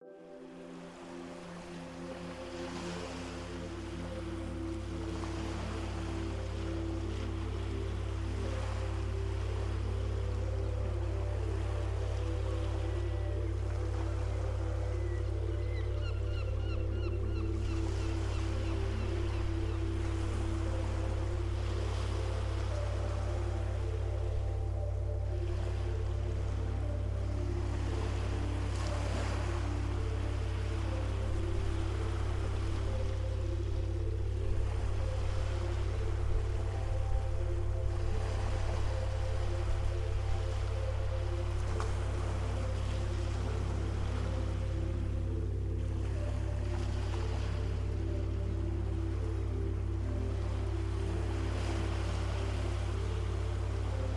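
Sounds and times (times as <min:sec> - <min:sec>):
dreamy music for focus: 0:00.0 - 0:54.1
ocean sounds: 0:00.0 - 0:54.1.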